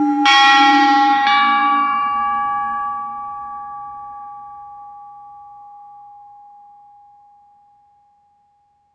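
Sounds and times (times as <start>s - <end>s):
internal PA system bell: 0.0s - 8.2s.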